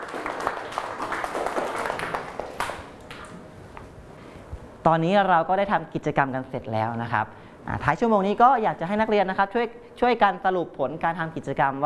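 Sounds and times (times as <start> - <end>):
classroom applause: 0.0 - 3.0
speech: 4.8 - 11.8.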